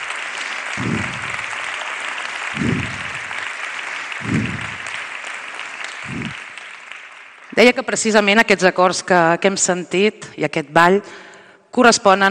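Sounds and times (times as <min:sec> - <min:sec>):
applause for musicians and dancers: 0:00.0 - 0:08.4
speech: 0:07.6 - 0:12.3.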